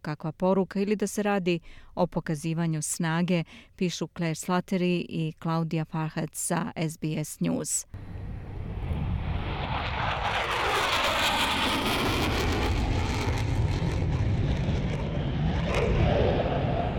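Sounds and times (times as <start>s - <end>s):
speech: 0.0s - 8.3s
military warplanes jet roar at the Pitch Black exercise in Darwin: 8.0s - 16.9s.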